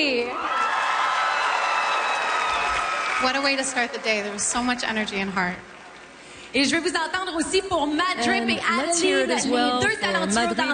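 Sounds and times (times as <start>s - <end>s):
crowd cheering with whoops and shouts: 0.0s - 6.0s
speech: 3.2s - 5.7s, 6.5s - 10.7s.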